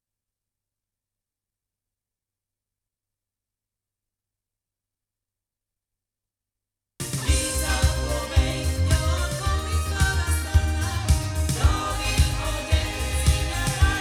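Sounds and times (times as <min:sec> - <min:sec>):
loudspeakers: 0:07.2 - 0:14.0.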